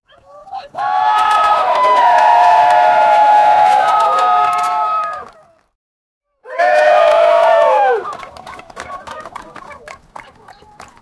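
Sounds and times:
team cheering: 0.6s - 5.4s, 6.4s - 8.4s.

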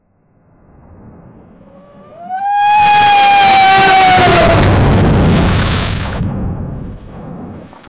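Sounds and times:
reversed scream: 1.6s - 6.1s.

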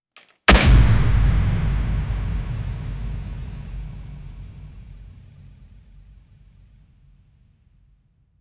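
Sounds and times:
heavy fighting game style hit: 0.5s - 5.2s.

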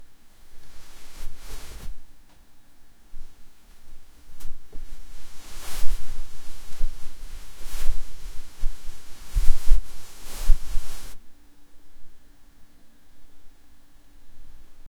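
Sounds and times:
clothes rustling from gentle touching: 0.6s - 2.0s, 3.2s - 11.2s.

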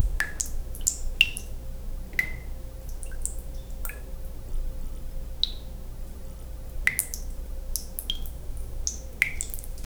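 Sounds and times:
water dripping in a cave: 0.0s - 9.9s.

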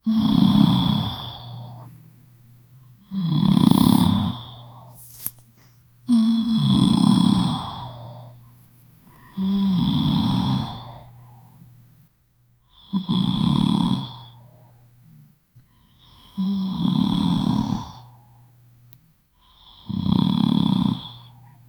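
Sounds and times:
girl snoring loudly: 0.0s - 1.9s, 3.0s - 5.2s, 6.1s - 8.4s, 9.3s - 11.2s, 12.8s - 14.4s, 16.0s - 18.2s, 19.5s - 21.4s.

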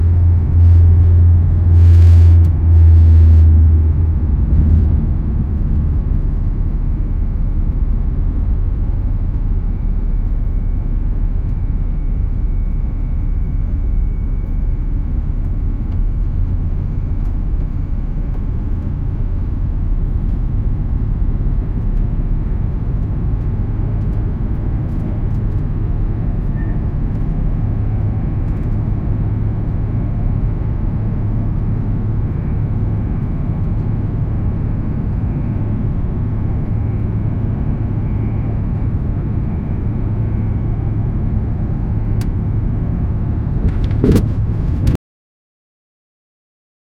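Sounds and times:
Boeing 737-800 airplane noise at window: 0.0s - 45.0s.

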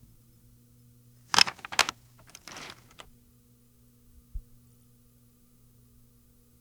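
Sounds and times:
retro object being inserted: 1.3s - 3.0s.

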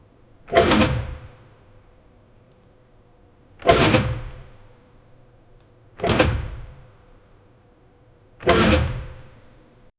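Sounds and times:
air vent mechanism opening: 0.5s - 1.6s, 3.6s - 4.7s, 6.0s - 7.2s, 8.4s - 9.8s.

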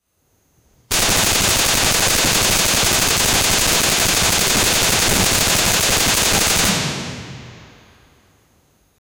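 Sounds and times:
assault rifle shooting: 0.9s - 7.9s.

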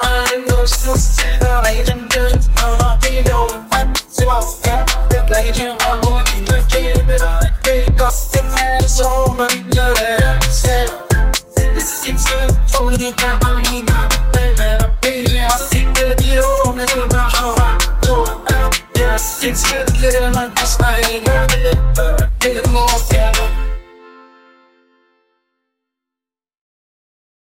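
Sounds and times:
acoustic K-pop music: 0.0s - 24.3s.

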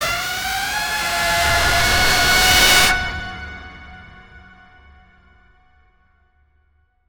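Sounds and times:
jump scare sting: 0.1s - 3.6s.

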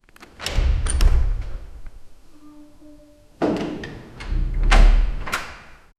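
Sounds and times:
wooden door opening: 0.2s - 2.0s, 3.4s - 5.7s.

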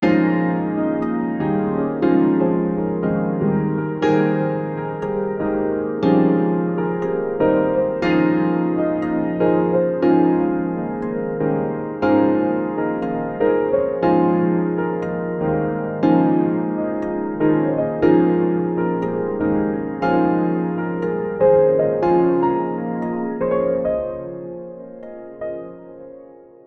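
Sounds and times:
warm uplifting tune: 0.0s - 26.2s.

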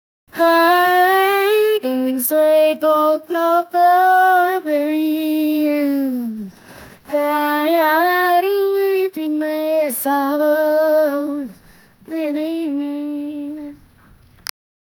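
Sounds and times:
woman singing a phrase expressively: 0.3s - 13.9s.

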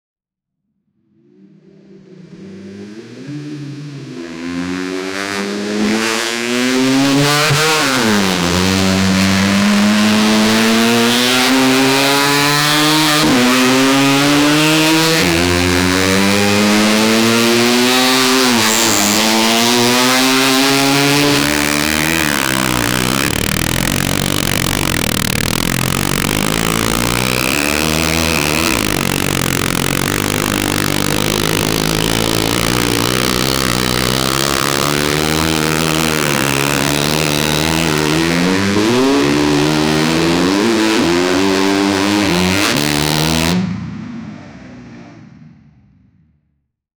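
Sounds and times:
race motorbike with V4 engine: 2.0s - 44.6s.

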